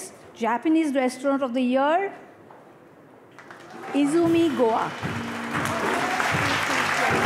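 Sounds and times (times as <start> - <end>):
speech: 0.4 - 2.3, 3.9 - 5.7
applause for best Japanese restaurant of the year winners: 3.4 - 7.2.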